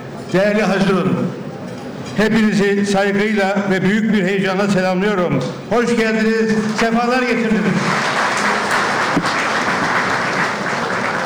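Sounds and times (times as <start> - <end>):
speech: 0.3 - 1.4, 2.1 - 8.4
audience applause: 7.6 - 11.2.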